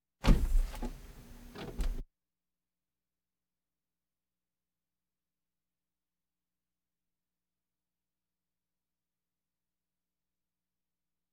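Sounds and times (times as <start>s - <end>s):
various automobiles: 0.2s - 2.0s.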